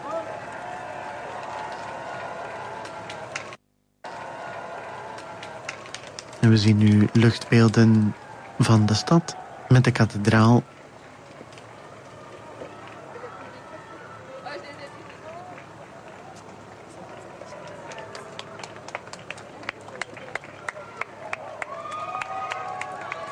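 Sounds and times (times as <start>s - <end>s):
crowd lining the street as the Pope passes: 0.0s - 23.2s
speech: 6.4s - 10.8s.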